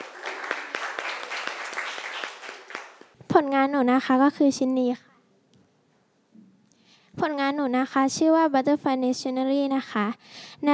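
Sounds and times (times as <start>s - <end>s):
classroom applause: 0.0s - 3.2s
speech: 3.4s - 5.1s, 7.2s - 10.7s.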